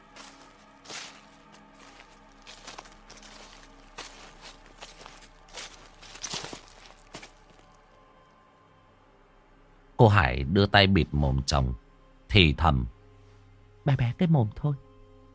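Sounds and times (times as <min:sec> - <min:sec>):
footsteps crunching on dry leaves: 0:00.0 - 0:07.7
speech: 0:10.0 - 0:13.0, 0:13.8 - 0:14.9.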